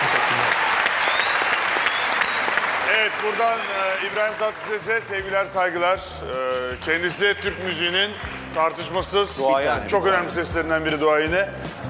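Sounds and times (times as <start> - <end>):
audience applause: 0.0 - 5.8, 6.5 - 9.2
speech: 3.1 - 11.8.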